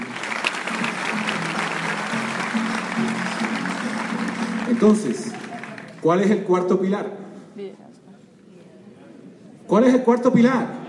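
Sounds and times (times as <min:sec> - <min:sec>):
audience applause: 0:00.0 - 0:06.1
speech: 0:04.8 - 0:05.4, 0:06.0 - 0:07.8, 0:09.7 - 0:10.8.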